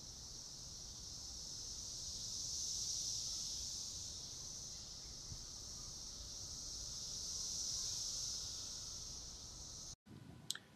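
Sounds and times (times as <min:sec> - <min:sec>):
periodical cicadas giving a high buzzing chorus: 0:00.0 - 0:10.0.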